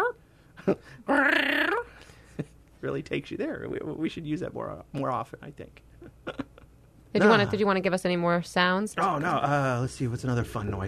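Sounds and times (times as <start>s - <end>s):
speech: 0.7s - 1.6s, 2.4s - 6.4s, 7.2s - 10.8s
person imitating a cat's waking cry: 1.1s - 1.9s.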